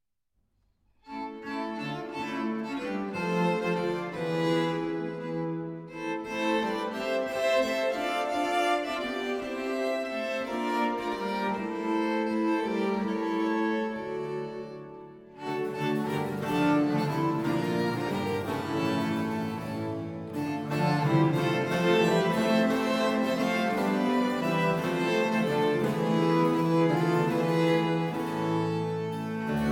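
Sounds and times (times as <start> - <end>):
six-part sinfonia: 1.1 - 29.7.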